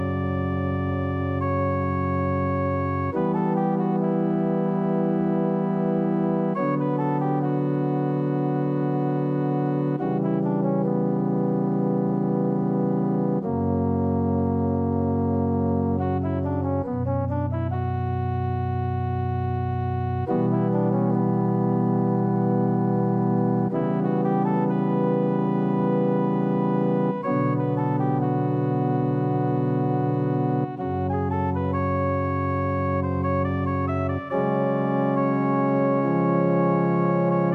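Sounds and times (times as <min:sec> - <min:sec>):
organ: 0:00.0 - 0:37.5
piano: 0:00.0 - 0:37.5.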